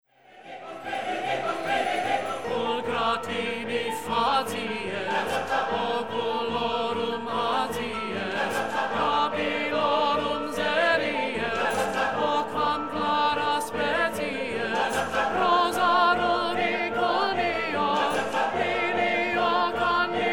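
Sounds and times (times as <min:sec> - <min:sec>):
choir tenor singing: 0:00.4 - 0:20.3.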